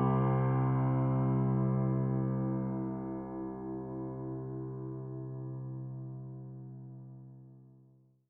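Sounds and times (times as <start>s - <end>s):
solo piano music: 0.0s - 6.1s.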